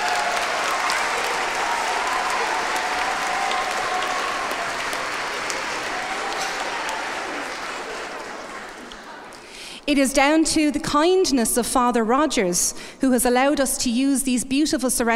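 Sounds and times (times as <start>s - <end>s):
audience applause: 0.0s - 9.6s
speech: 9.9s - 15.1s.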